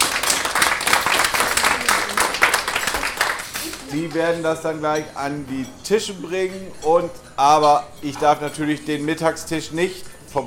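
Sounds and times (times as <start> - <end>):
audience applause: 0.0 - 4.0
speech: 3.9 - 10.4.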